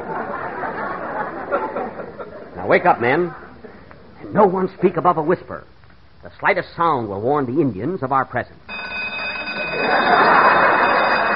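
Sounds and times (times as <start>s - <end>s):
laughter: 0.0s - 2.7s, 9.4s - 11.3s
speech: 2.7s - 3.4s, 4.2s - 8.7s
alarm clock ringing: 8.7s - 11.3s.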